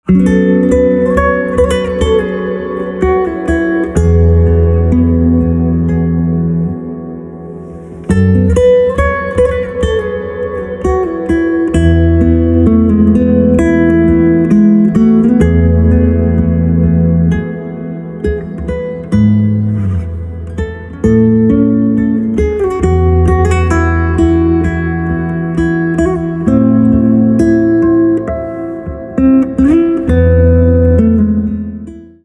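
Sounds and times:
silent guitar: 0:00.0 - 0:32.2.

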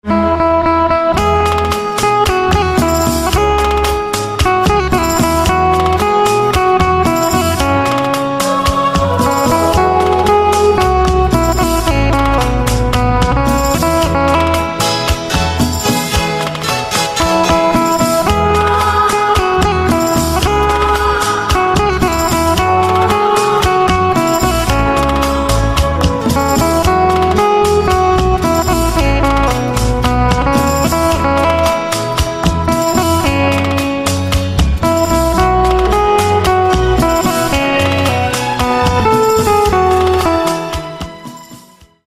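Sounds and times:
banjo: 0:00.0 - 0:42.0.

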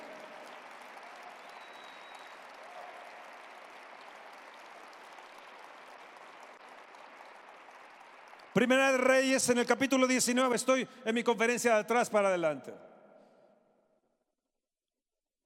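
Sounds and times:
audience applause: 0:00.0 - 0:10.7
speech: 0:08.6 - 0:12.9.

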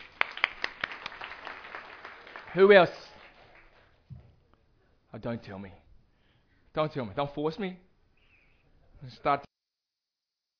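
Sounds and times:
scattered clapping from a small group: 0:00.0 - 0:04.0
speech: 0:02.6 - 0:03.0, 0:05.2 - 0:05.8, 0:06.8 - 0:07.9, 0:09.0 - 0:09.5.

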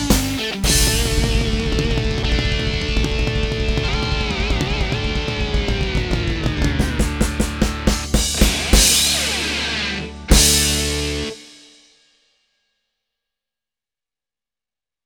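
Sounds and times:
PSR S670 keyboard rock music: 0:00.0 - 0:11.6.

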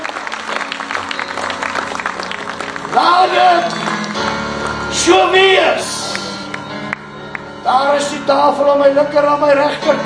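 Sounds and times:
church congregation clapping hands: 0:00.0 - 0:07.5
speech: 0:02.9 - 0:03.9, 0:05.0 - 0:05.9, 0:07.7 - 0:10.0.

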